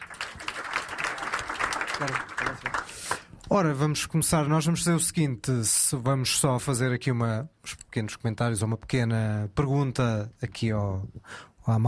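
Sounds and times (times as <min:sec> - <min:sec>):
audience applause: 0:00.0 - 0:03.3
speech: 0:02.0 - 0:11.8.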